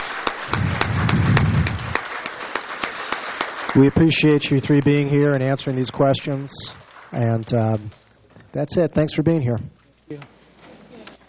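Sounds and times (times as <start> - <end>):
audience applause: 0.0 - 7.8
speech: 3.7 - 10.4.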